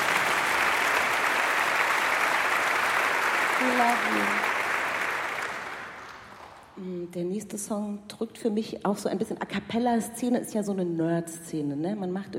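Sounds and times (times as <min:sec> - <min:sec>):
audience clapping: 0:00.0 - 0:06.8
speech: 0:03.7 - 0:04.5, 0:07.1 - 0:12.3.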